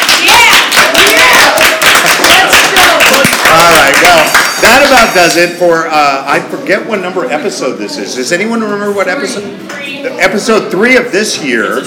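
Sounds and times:
crowd applause: 0.0s - 5.5s
speech: 4.9s - 11.8s.

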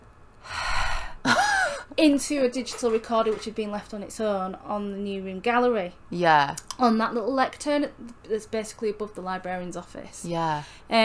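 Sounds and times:
person gasping a sharp breathy inhale: 0.4s - 1.9s
speech: 1.2s - 11.0s.

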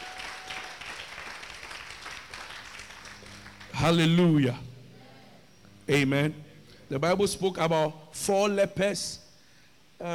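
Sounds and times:
audience clapping: 0.0s - 3.8s
speech: 3.8s - 4.7s, 5.9s - 9.2s, 10.0s - 10.1s.

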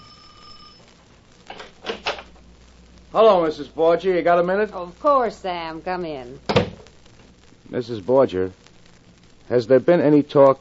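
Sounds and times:
doorbell ringing: 0.0s - 0.8s
speech: 3.1s - 6.6s, 7.7s - 8.6s, 9.5s - 10.5s.

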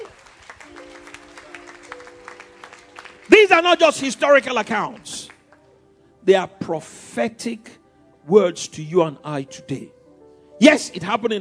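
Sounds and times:
audience applause as a clap offering: 0.0s - 5.6s
speech: 3.5s - 5.2s, 6.3s - 10.0s, 10.6s - 11.3s.

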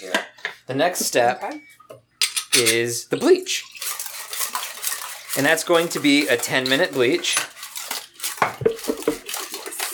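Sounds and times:
speech: 0.7s - 1.8s, 2.6s - 3.7s, 5.3s - 7.5s
water sloshing as it is poured out of a tray: 3.6s - 9.9s.

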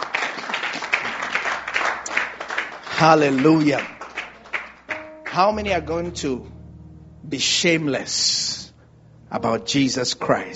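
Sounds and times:
audience clapping: 0.0s - 5.8s
speech: 3.0s - 4.0s, 5.3s - 6.6s, 7.2s - 8.4s, 9.3s - 10.5s.

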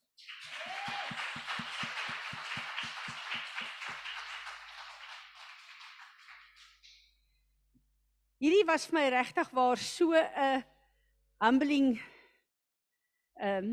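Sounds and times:
audience applause: 0.0s - 7.0s
speech: 8.4s - 10.7s, 11.4s - 12.1s, 13.4s - 13.7s.

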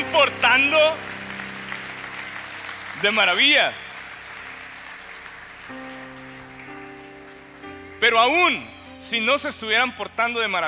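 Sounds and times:
audience applause: 0.0s - 8.4s
speech: 0.2s - 1.1s, 3.0s - 3.8s, 8.0s - 10.6s.

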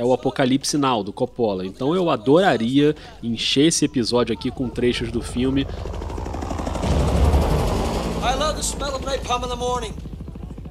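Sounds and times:
speech: 0.0s - 6.1s, 8.6s - 10.1s
Vietnam War helicopter rotors thumping: 4.1s - 10.6s.

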